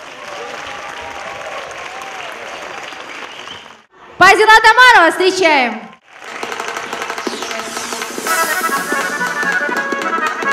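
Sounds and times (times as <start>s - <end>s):
audience applauding loudly: 0.0s - 3.9s, 6.0s - 10.5s
speech: 4.2s - 5.9s.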